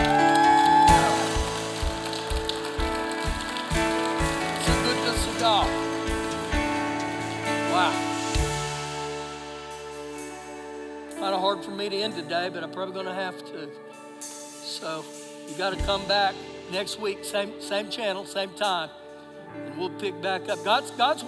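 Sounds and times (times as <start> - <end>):
audience clapping: 0.0 - 8.7
speech: 11.6 - 21.2.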